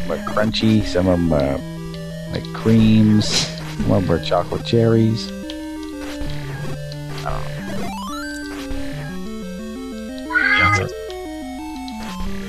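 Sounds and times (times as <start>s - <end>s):
speech: 0.1s - 1.7s, 2.3s - 5.4s
cat meowing: 10.2s - 10.9s.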